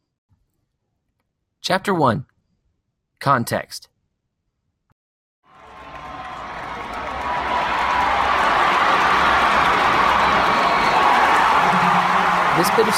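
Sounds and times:
speech: 0:01.6 - 0:02.3, 0:03.2 - 0:03.9, 0:12.6 - 0:12.9
stadium crowd cheering a touchdown: 0:05.5 - 0:12.9.

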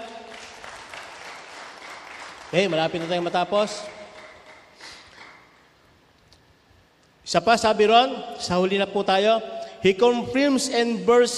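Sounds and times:
audience applause: 0:00.0 - 0:05.5
speech: 0:02.5 - 0:04.0, 0:07.3 - 0:11.3.

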